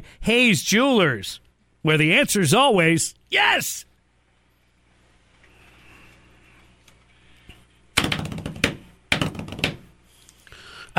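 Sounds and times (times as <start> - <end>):
speech: 0.1 - 3.9
banging on a desk: 8.0 - 9.9.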